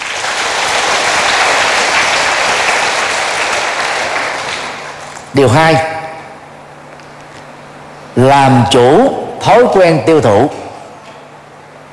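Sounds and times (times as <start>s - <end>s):
loud applause: 0.0s - 5.2s
speech: 5.4s - 5.9s, 8.2s - 10.7s.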